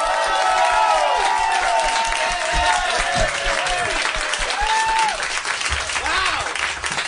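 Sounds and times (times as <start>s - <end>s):
whoops and cheers: 0.0s - 5.4s
audience applause: 0.0s - 7.0s.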